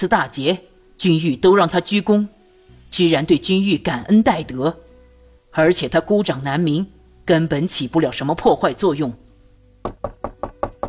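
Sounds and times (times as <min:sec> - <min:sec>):
speech: 0:00.0 - 0:04.8, 0:05.6 - 0:10.1
loud knocking on a door: 0:09.8 - 0:10.8.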